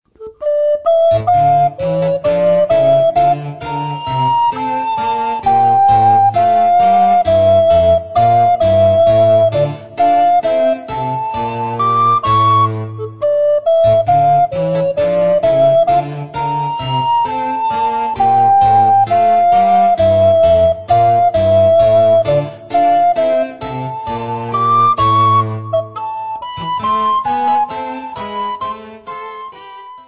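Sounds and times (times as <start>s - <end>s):
gavotte: 0.1s - 30.0s.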